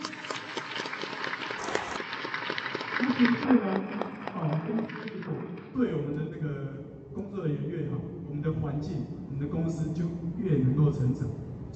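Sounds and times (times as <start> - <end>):
applause: 0.0 - 5.8
speech: 3.2 - 11.7.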